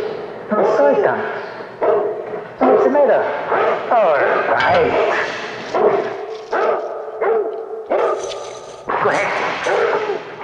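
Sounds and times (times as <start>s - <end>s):
speech: 0.5s - 1.5s
dog barking: 1.8s - 8.7s, 9.6s - 10.3s.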